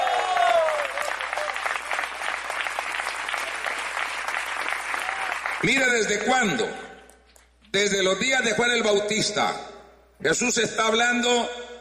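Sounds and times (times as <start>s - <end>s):
audience applause: 0.0s - 5.9s
speech: 5.6s - 6.8s, 7.7s - 11.6s.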